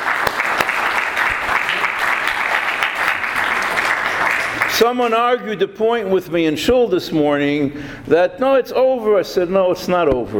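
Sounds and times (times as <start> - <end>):
rousing round of applause: 0.0 - 4.8
speech: 4.8 - 10.3.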